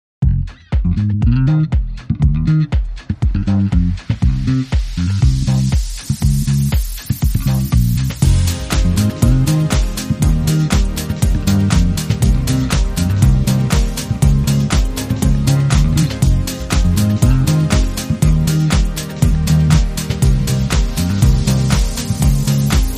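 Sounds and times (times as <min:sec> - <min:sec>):
bass gesture: 0:00.2 - 0:22.9.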